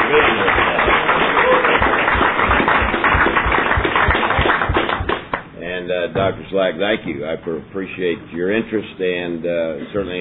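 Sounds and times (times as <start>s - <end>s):
round of applause: 0.0s - 5.5s
speech: 6.3s - 10.2s.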